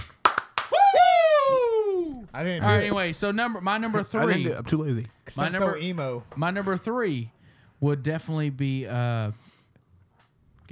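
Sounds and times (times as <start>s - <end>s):
hand clapping: 0.0s - 1.2s
long high voiced whoop sliding downward in pitch: 0.7s - 2.3s
speech: 2.4s - 9.4s.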